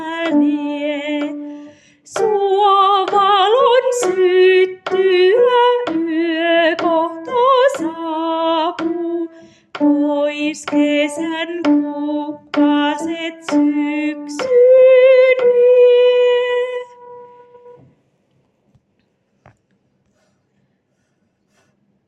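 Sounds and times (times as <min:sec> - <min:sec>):
soprano singing an autumn song: 0:00.0 - 0:17.9.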